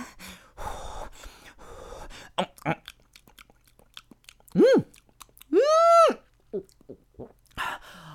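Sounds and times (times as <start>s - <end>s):
someone chewing food while eating: 2.3s - 5.6s, 6.2s - 7.6s
mouth smacking: 2.3s - 7.6s
person humming mm in enjoyment: 4.5s - 7.4s.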